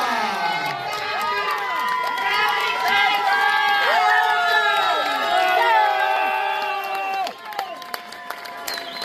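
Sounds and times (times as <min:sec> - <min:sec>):
audience applause: 0:00.0 - 0:09.0.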